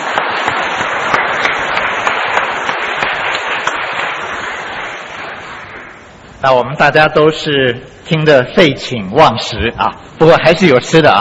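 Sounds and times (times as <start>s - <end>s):
audience applause: 0.0s - 6.0s
speech: 6.4s - 11.2s.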